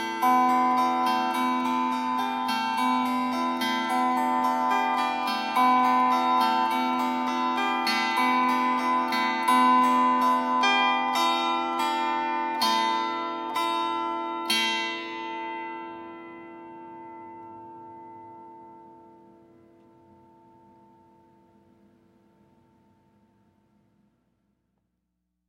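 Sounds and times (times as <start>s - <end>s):
improvisation on a Welsh plucked cruit: 0.0s - 20.0s.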